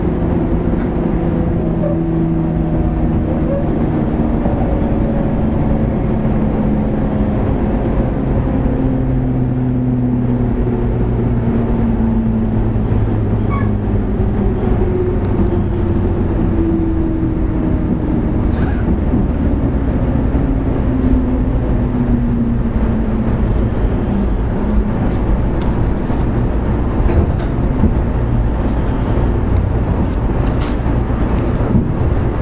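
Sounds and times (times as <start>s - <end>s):
JR West 103 series local train running: 0.0s - 32.4s.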